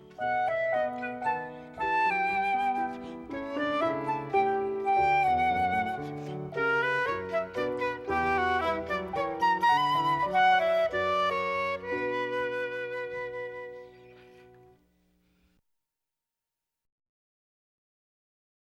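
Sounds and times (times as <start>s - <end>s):
flute: 0.0s - 14.8s
piano: 0.0s - 15.0s.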